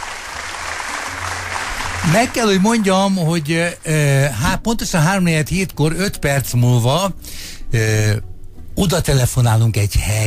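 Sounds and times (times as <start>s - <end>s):
audience clapping: 0.0s - 4.0s
speech: 2.0s - 10.2s.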